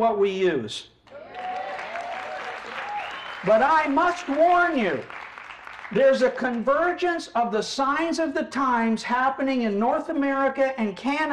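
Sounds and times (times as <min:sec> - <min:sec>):
speech: 0:00.0 - 0:00.9, 0:03.4 - 0:05.2, 0:05.9 - 0:11.3
audience applause: 0:01.1 - 0:06.7.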